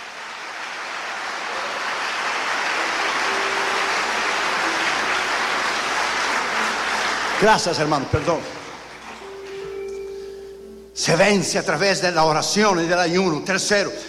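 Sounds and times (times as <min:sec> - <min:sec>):
audience applauding: 0:00.0 - 0:09.5
speech: 0:07.4 - 0:08.6, 0:11.0 - 0:14.0.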